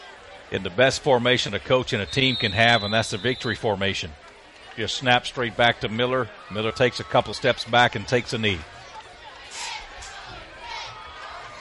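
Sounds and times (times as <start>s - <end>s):
stunned stadium crowd murmuring at Fairview: 0.0s - 11.5s
speech: 0.5s - 8.8s.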